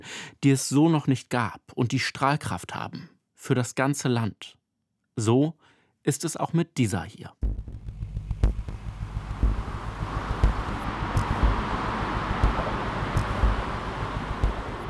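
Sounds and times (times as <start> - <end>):
speech: 0.0 - 4.6, 5.2 - 7.5
motorway traffic roar: 8.5 - 14.8.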